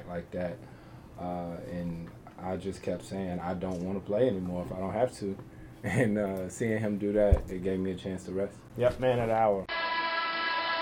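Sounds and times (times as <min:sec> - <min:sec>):
speech: 0:00.1 - 0:09.8
game horn blast at a playoff game: 0:09.7 - 0:10.8.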